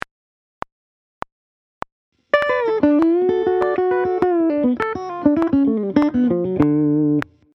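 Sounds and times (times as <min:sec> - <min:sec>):
guitar played with hybrid picking: 0:02.3 - 0:07.5.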